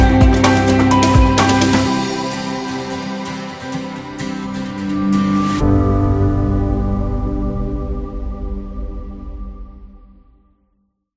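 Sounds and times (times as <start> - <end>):
light happy music: 0.0 - 8.5.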